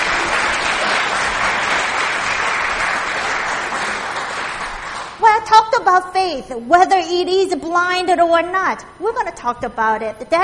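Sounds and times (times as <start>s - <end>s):
audience applause: 0.0s - 5.2s
speech: 5.8s - 10.4s.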